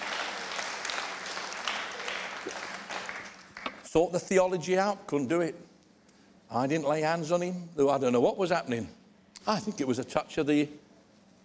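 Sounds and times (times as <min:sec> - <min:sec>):
audience clapping: 0:00.0 - 0:03.9
speech: 0:03.9 - 0:05.7, 0:06.5 - 0:10.8.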